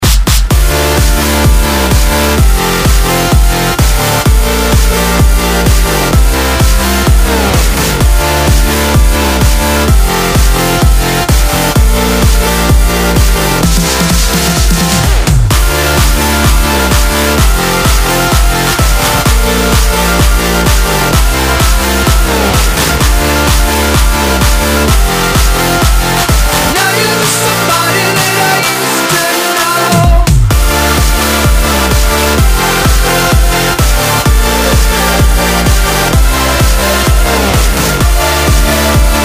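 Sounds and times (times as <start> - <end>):
dance music tracks: 0.0 - 39.2.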